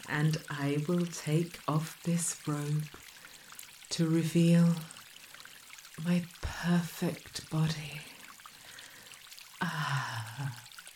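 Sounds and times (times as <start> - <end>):
speech: 0.0 - 3.0, 3.9 - 5.0, 6.0 - 8.1, 9.6 - 10.6
water pouring from a shower: 0.0 - 10.9.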